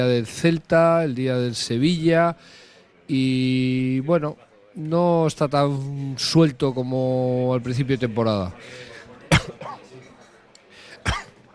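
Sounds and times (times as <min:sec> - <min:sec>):
speech: 0:00.0 - 0:08.9
cough: 0:09.3 - 0:10.2, 0:11.0 - 0:11.4.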